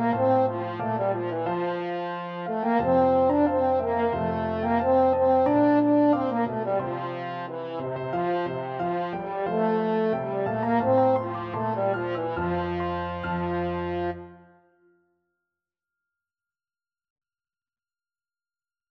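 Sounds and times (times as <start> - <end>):
French horn: 0.0 - 14.5.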